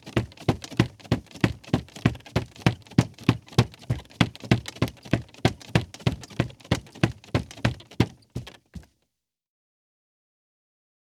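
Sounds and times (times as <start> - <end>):
Foley footsteps: 0.1 - 8.9.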